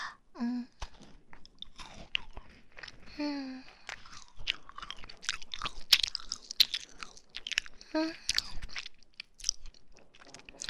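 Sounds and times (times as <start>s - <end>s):
crunchy chewing and biting of food: 0.8s - 10.6s.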